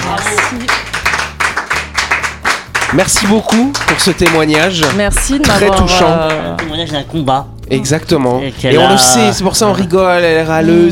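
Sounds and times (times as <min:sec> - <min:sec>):
audience applause: 0:00.0 - 0:05.0
speech: 0:02.9 - 0:10.9.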